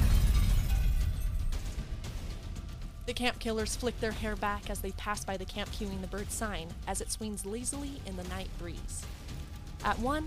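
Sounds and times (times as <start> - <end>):
crackling debris: 0.0 - 1.8
deep sustained explosion rumble: 0.0 - 2.4
speech: 3.1 - 9.1, 9.8 - 10.2.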